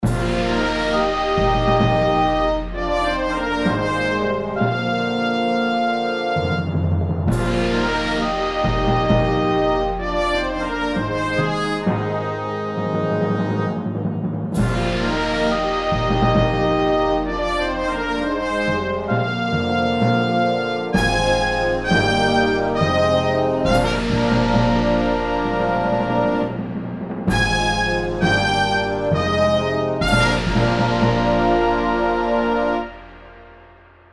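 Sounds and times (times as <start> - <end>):
fanfare: 0.0 - 34.1.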